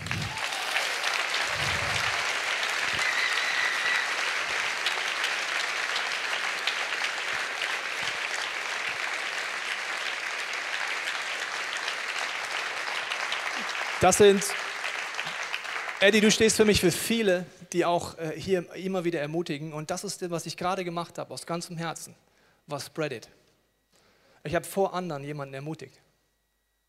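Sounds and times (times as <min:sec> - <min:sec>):
audience applause: 0:00.0 - 0:16.6
speech: 0:14.0 - 0:14.6, 0:16.0 - 0:23.4, 0:24.4 - 0:26.0.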